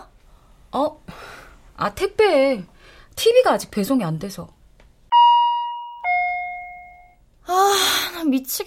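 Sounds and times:
speech: 0.7 - 4.6, 8.3 - 8.6
patient call buzzer two-tone electronic chime: 5.1 - 7.2.

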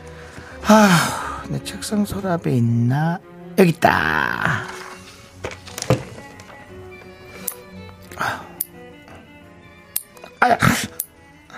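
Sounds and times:
speech: 0.7 - 4.8
rustling: 4.7 - 6.7
fingernails clipped with nail clippers: 7.4 - 8.0, 9.9 - 10.3, 10.9 - 11.2.

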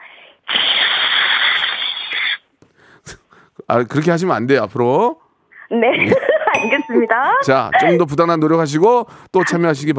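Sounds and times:
voice imitating electric rice cooker steam release: 0.0 - 2.4
speech: 3.7 - 9.9
laughter: 5.9 - 6.7.

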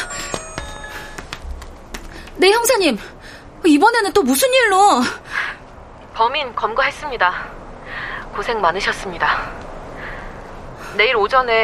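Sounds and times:
mobile phone bell-like ringtone: 0.0 - 1.4
speech: 2.4 - 5.2, 6.2 - 7.6, 8.4 - 9.6, 11.0 - 11.6.

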